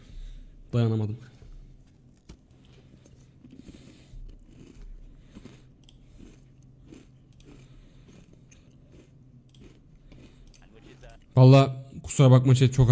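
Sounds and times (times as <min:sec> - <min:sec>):
speech: 0:00.7 - 0:01.4, 0:11.4 - 0:12.9
chewing a mastic biscuit: 0:01.8 - 0:11.4.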